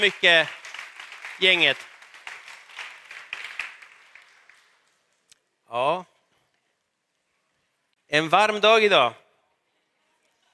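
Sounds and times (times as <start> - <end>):
speech: 0.0 - 0.6, 1.4 - 1.9, 5.7 - 6.1, 8.1 - 9.2
applause for worship team: 0.0 - 5.0.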